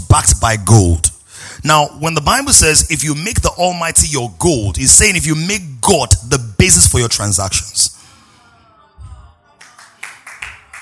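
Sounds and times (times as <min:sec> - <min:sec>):
speech: 0:00.2 - 0:08.0
single person clapping: 0:09.6 - 0:10.7.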